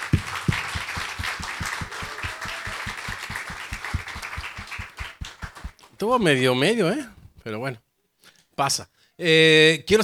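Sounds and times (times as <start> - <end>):
audience applause: 0.0 - 5.8
speech: 6.0 - 7.8, 8.6 - 10.0.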